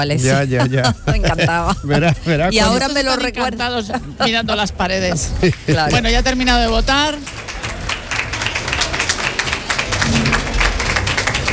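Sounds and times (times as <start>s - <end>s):
speech: 0.0s - 7.4s
laughter: 0.1s - 2.7s, 3.9s - 6.1s
applause at a polling station: 5.4s - 11.5s.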